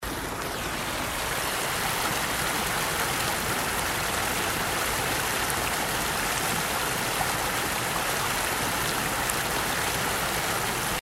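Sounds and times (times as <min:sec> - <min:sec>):
waterfall: 0:00.0 - 0:11.0.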